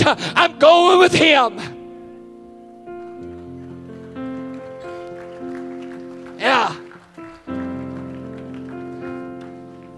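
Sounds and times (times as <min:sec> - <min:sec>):
speech: 0:00.0 - 0:01.7, 0:06.4 - 0:06.8
audience hand clapping: 0:03.2 - 0:09.9.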